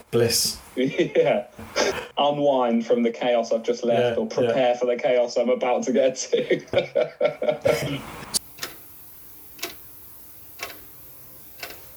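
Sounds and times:
faint steady hiss: 0.0s - 11.9s
speech: 0.1s - 8.3s
clock ticking: 11.6s - 11.9s.

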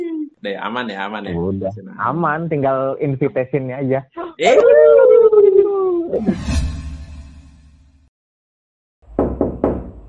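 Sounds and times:
speech: 0.5s - 5.6s, 6.1s - 6.7s
laughter: 4.2s - 6.1s
knocking on a door: 9.1s - 10.0s.

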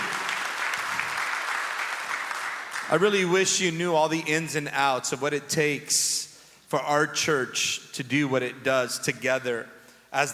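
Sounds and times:
audience applause: 0.0s - 3.0s
speech: 2.9s - 10.3s.

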